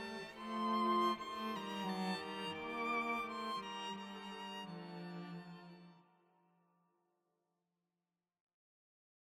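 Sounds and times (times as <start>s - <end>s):
string quartet: 0.0s - 6.0s.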